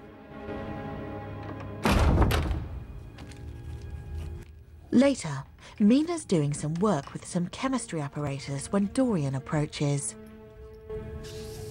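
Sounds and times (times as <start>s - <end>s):
door closing with a thud: 1.4s - 2.9s
speech: 5.0s - 10.2s.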